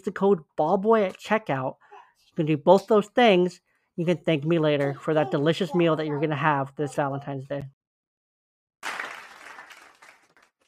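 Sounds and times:
speech: 0:00.0 - 0:01.8, 0:02.4 - 0:07.8
live in-studio audience applause: 0:08.8 - 0:10.6.

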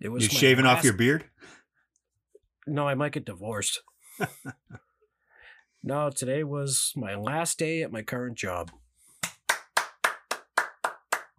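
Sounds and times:
speech: 0:00.0 - 0:01.6, 0:02.6 - 0:04.8, 0:05.8 - 0:08.8
hands clapping: 0:09.2 - 0:11.3.

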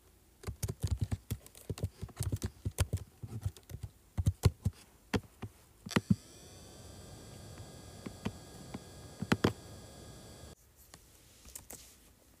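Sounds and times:
keyboard typing and clicking: 0:00.4 - 0:04.7
steady whining hum with a soft rumble: 0:05.9 - 0:10.6.

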